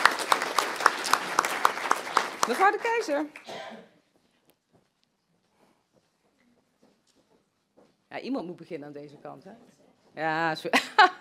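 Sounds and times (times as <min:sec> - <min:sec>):
crowd applauding: 0:00.0 - 0:03.5
speech: 0:02.5 - 0:04.0, 0:08.1 - 0:11.2.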